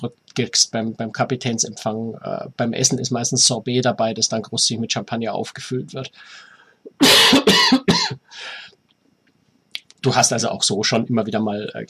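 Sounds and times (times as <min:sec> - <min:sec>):
speech: 0:00.0 - 0:08.6, 0:10.0 - 0:11.8
harsh coughing: 0:07.0 - 0:08.3.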